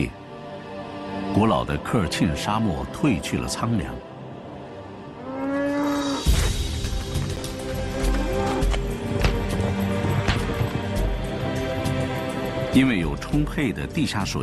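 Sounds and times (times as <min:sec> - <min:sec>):
speech: 0:01.4 - 0:04.1, 0:12.7 - 0:14.4
herd of cattle mooing on grasslands near the Horqin sands: 0:05.2 - 0:06.3
cattle hooves thumping and scuffing: 0:06.4 - 0:12.3.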